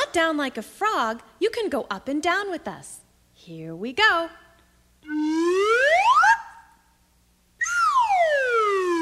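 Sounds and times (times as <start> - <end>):
speech: 0.1 - 4.4, 5.0 - 6.2
whistle sliding up and down: 5.0 - 6.6, 7.6 - 9.0.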